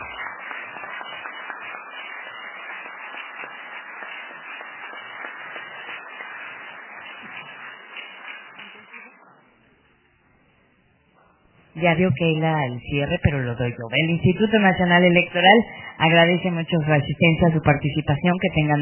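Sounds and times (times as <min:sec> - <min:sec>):
audience applause: 0:00.0 - 0:09.2
speech: 0:11.8 - 0:18.7.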